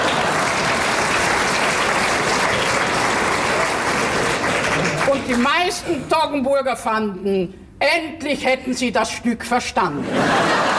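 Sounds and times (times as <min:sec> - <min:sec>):
thunderous applause: 0:00.0 - 0:05.4
speech: 0:05.3 - 0:10.7
laughter: 0:10.0 - 0:10.7.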